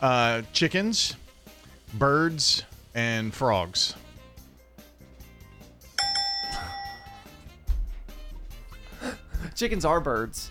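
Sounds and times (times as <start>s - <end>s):
speech: 0.0s - 1.2s, 1.9s - 4.0s, 9.6s - 10.5s
quiz game buzzer: 6.0s - 7.6s.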